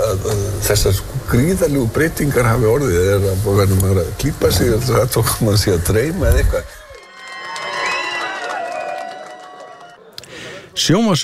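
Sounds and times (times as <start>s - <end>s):
speech: 0.7s - 6.8s, 10.8s - 11.2s
crowd cheering at an election night party at Glerártorg: 6.7s - 10.2s.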